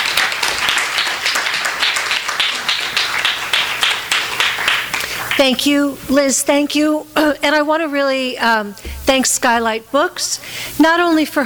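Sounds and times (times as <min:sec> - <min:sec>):
audience applause: 0:00.0 - 0:05.4
speech: 0:05.4 - 0:11.4.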